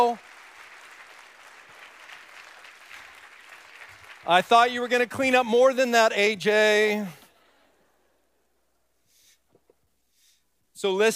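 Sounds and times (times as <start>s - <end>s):
speech: 0.0s - 0.3s, 4.2s - 7.2s, 10.8s - 11.1s
round of applause: 0.0s - 5.4s.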